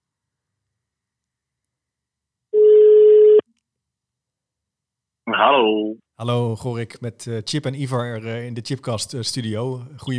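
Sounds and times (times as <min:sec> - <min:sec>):
ringback tone on an outgoing phone call: 0:02.6 - 0:03.4
speech: 0:05.4 - 0:10.1.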